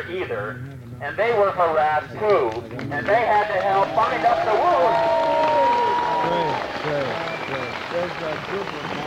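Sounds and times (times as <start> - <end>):
speech: 0.0 - 5.7, 7.9 - 9.0
crowd applauding medics: 2.3 - 9.0
people shouting and cheering: 3.6 - 7.7.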